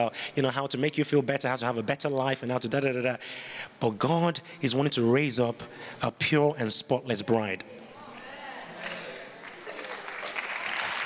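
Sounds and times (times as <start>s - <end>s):
speech: 0.0s - 7.8s
audience clapping: 9.4s - 11.0s.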